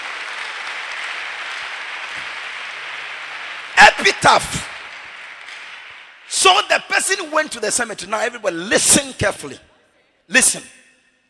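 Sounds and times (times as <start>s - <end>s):
audience clapping: 0.0s - 7.9s
speech: 4.0s - 4.7s, 6.4s - 9.7s, 10.3s - 10.8s.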